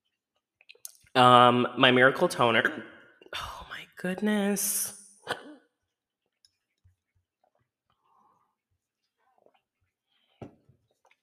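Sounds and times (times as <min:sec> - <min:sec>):
speech: 0:01.2 - 0:05.0
hiccups: 0:05.2 - 0:05.7
faint clicks and breathy noises: 0:06.4 - 0:11.2.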